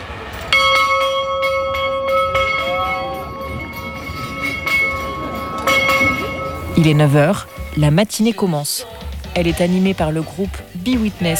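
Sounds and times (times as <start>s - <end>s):
bell ringing: 0.5s - 8.6s
speech: 6.8s - 11.3s.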